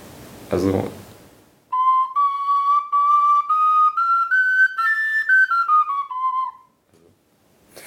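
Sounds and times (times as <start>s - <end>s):
speech: 0.5s - 1.0s
small four-hole flute playing a breathy melody: 1.7s - 6.8s.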